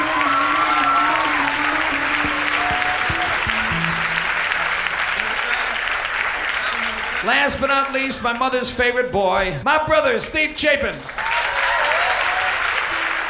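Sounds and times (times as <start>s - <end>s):
crowd cheering and whooping: 0.0s - 7.2s, 11.2s - 13.2s
crowd clapping: 0.0s - 8.4s, 10.8s - 13.2s
speech: 7.2s - 11.2s.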